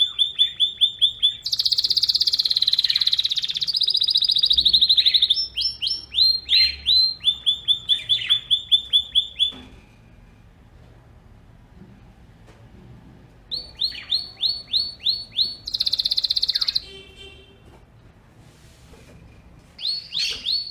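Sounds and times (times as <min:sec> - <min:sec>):
canary: 0:00.0 - 0:10.0, 0:13.5 - 0:17.5, 0:19.8 - 0:20.6.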